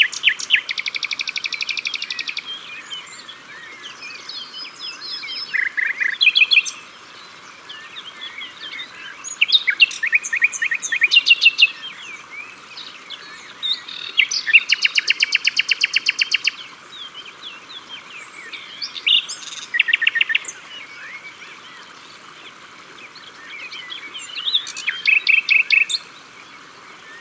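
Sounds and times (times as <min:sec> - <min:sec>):
common nightingale singing: 0:00.0 - 0:06.8, 0:07.7 - 0:12.0, 0:12.8 - 0:16.6, 0:18.4 - 0:21.1, 0:23.5 - 0:26.0.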